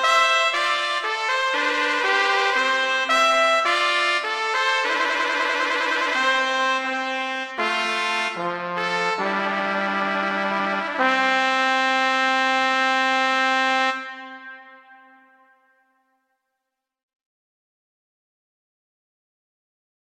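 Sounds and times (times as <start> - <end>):
larghetto piece: 0.0 - 15.7.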